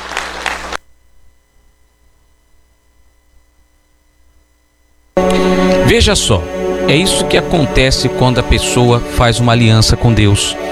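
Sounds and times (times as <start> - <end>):
audience applause: 0.0 - 0.8
speech: 5.9 - 10.6.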